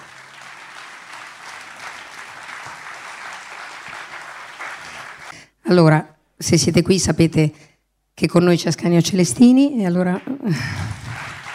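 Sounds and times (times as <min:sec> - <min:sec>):
audience applauding: 0:00.0 - 0:05.3, 0:10.2 - 0:11.5
speech: 0:05.7 - 0:11.0.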